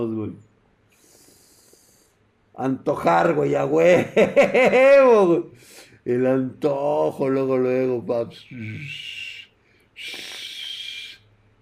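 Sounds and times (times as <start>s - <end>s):
speech: 0.0s - 0.5s, 2.6s - 9.2s
laughter: 3.9s - 5.1s
loud whistle: 8.7s - 11.3s.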